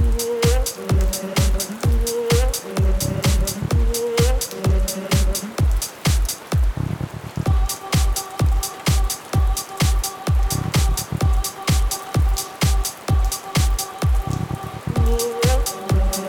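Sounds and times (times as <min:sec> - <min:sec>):
deep house music mix: 0:00.0 - 0:16.2
heavy rain: 0:00.0 - 0:16.2.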